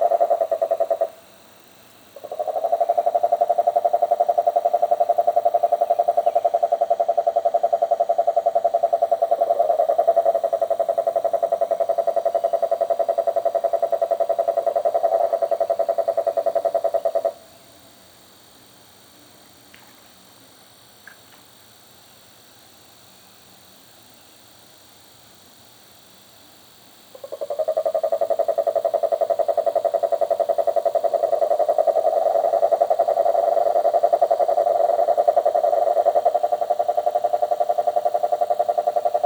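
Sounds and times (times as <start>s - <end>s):
marine toad Rhinella marina calling: 0.0s - 1.2s, 2.2s - 17.5s, 27.2s - 39.2s.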